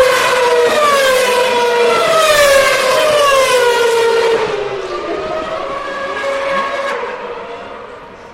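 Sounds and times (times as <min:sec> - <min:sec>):
McLaren Mercedes Formula One car racing at 2012 Belgian Grand Prix at Spa: 0:00.0 - 0:08.3.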